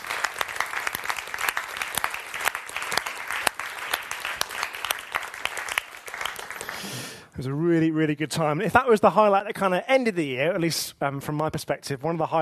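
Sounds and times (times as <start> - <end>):
audience applause: 0.0 - 7.2
speech: 7.4 - 12.4.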